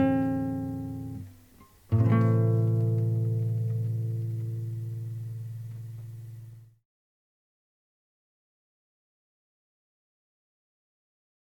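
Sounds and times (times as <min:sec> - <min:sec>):
guitar variations: 0:00.0 - 0:06.8.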